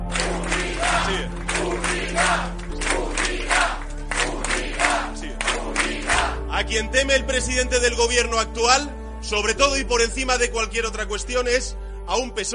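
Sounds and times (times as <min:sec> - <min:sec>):
large political rally crowd chanting a slogan in unison: 0:00.0 - 0:06.5
speech: 0:06.6 - 0:12.5.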